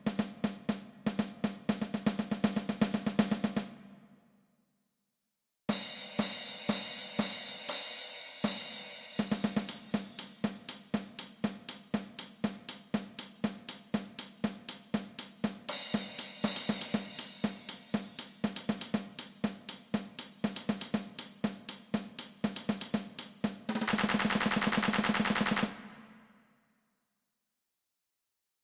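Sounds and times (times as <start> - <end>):
drum kit playing: 0.0 - 3.8, 5.7 - 26.0.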